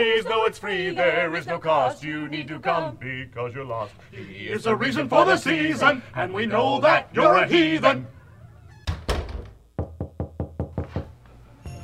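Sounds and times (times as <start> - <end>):
speech: 0.0 - 8.2
knocking on a garage door: 8.9 - 11.2.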